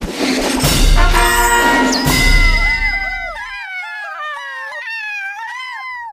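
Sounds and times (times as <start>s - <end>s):
jingle: 0.7s - 3.4s.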